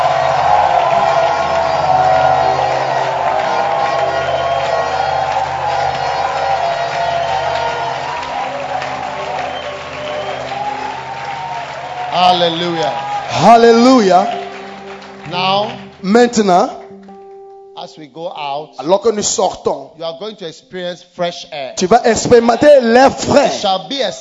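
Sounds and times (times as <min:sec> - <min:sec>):
shouts and whoops from a crowd: 0:00.0 - 0:13.7
crowd clapping in praise: 0:00.0 - 0:17.4
speech: 0:12.4 - 0:14.4, 0:15.4 - 0:16.8, 0:17.9 - 0:24.1.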